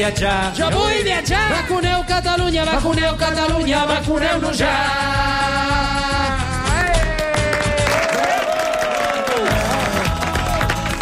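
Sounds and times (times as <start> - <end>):
speech: 0.0 - 6.4
people applauding themselves: 7.0 - 10.9.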